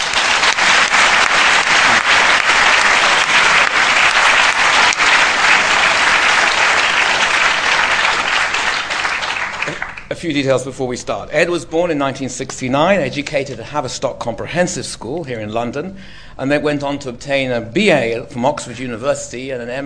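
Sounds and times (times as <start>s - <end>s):
audience applause welcoming a speaker at a London talk: 0.0s - 10.1s
speech: 10.2s - 19.8s.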